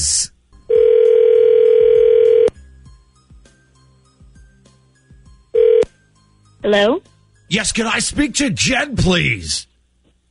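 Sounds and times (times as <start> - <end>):
telephone dial tone: 0.7 - 2.5, 5.6 - 5.9
speech: 6.7 - 9.7.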